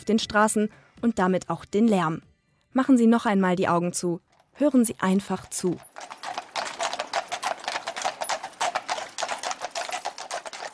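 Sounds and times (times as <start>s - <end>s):
speech: 0.0s - 6.2s
horse-drawn tram hooves clip-clopping: 5.2s - 10.7s.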